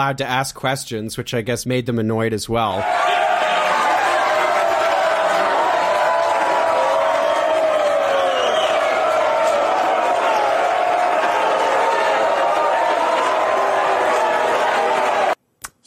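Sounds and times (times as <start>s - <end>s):
speech: 0.0s - 3.3s
many voices shouting: 2.8s - 15.4s
restless crowd jeering and booing: 2.8s - 15.4s.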